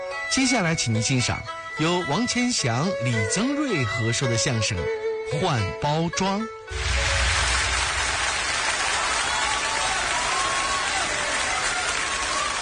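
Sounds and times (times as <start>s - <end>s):
speech: 0.3s - 7.0s
audience applause: 6.8s - 12.5s.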